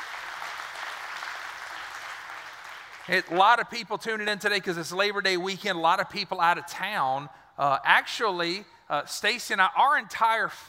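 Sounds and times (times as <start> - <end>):
church congregation clapping: 0.0 - 3.8
speech: 3.1 - 10.6.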